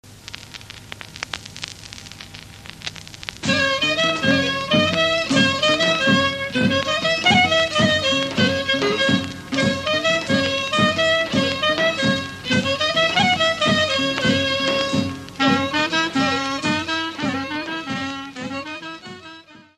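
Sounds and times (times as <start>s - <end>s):
Macedonian folk dance music: 2.8s - 19.7s.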